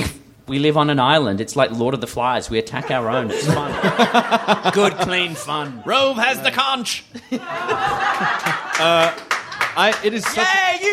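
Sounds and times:
speech: 0.5s - 10.9s
laughter: 2.7s - 10.9s
audience round of applause: 7.8s - 10.9s.

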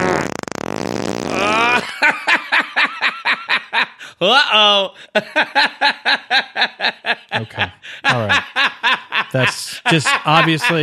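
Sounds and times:
fart sound effect: 0.0s - 1.8s
rhythmic laughter-like bursts: 1.3s - 4.2s, 5.0s - 10.8s
speech: 4.2s - 10.8s.

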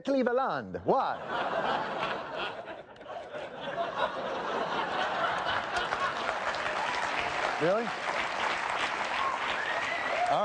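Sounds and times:
speech: 0.0s - 2.7s, 7.6s - 8.1s
laughter: 1.0s - 7.4s
audience clapping: 4.0s - 10.4s.

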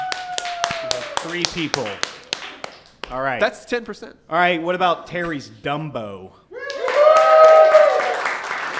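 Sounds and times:
loud sustained whoop: 0.0s - 1.2s, 6.5s - 8.4s
live crowd cheering: 0.0s - 2.8s, 6.6s - 8.7s
scattered clapping: 0.0s - 3.2s, 6.7s - 8.7s
speech: 1.2s - 2.1s, 3.1s - 6.4s.

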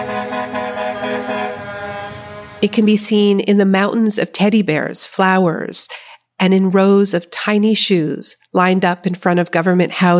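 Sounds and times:
convoy of cars honking horns: 0.0s - 2.7s
speech: 2.6s - 10.1s.

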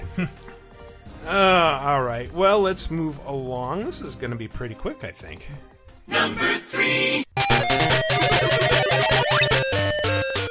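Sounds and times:
speech: 0.2s - 0.5s, 1.2s - 7.0s
Game Boy possession sound effect chiptune bleeps: 7.4s - 10.5s.

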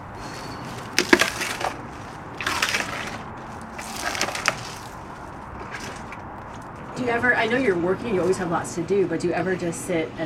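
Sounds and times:
rustling: 0.2s - 6.9s
elephant crunching palm fronds: 0.4s - 6.9s
speech: 7.0s - 10.2s.

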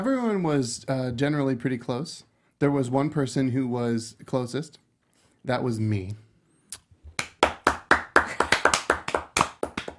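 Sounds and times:
speech: 0.0s - 4.8s, 5.4s - 6.2s
brief scattered clapping: 7.1s - 9.9s.

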